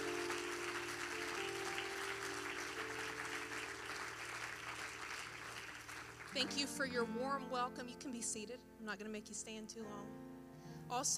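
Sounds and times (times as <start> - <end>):
audience applause: 0.0 - 6.4
speech: 6.3 - 10.3, 10.9 - 11.1.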